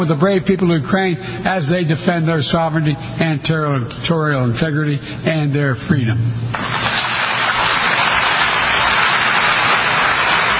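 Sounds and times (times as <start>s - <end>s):
speech: 0.0s - 7.1s
large audience applauding after speech: 6.6s - 10.5s.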